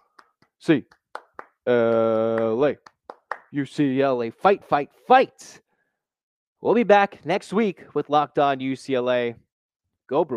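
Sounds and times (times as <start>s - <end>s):
rhythmic eight-count clap: 0.0s - 3.8s
speech: 0.6s - 1.0s, 1.6s - 2.9s, 3.5s - 5.6s, 6.6s - 9.4s, 10.1s - 10.3s.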